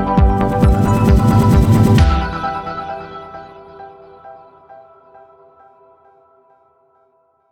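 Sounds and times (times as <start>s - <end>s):
crescendo music sting: 0.2s - 3.8s.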